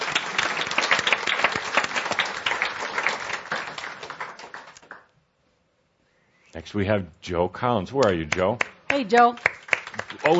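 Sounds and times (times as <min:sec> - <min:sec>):
audience applause: 0:00.0 - 0:05.1, 0:08.6 - 0:10.3
speech: 0:06.6 - 0:09.5.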